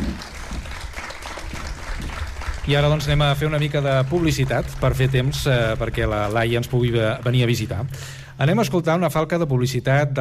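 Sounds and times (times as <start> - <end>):
applause: 0.0 - 7.8
speech: 2.7 - 10.1.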